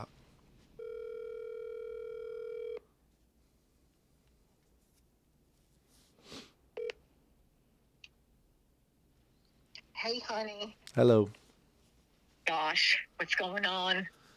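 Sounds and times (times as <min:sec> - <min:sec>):
steady buzzy telephone tone: 0:00.8 - 0:02.8, 0:06.8 - 0:07.0
soft rustle: 0:03.1 - 0:06.5, 0:11.3 - 0:12.5
speech: 0:10.0 - 0:11.4, 0:12.7 - 0:14.2.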